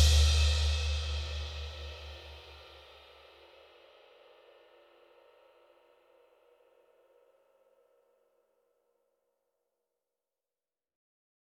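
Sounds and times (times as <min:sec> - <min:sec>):
huge dry rock drums: 0:00.0 - 0:02.4.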